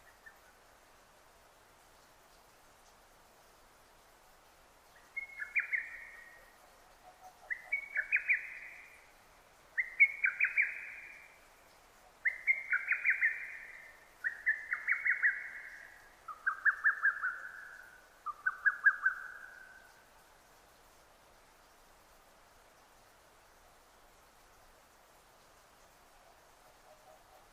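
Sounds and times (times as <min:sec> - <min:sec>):
lesser cuckoo song: 0:05.1 - 0:06.4, 0:07.2 - 0:08.9, 0:09.8 - 0:11.3, 0:12.2 - 0:19.8.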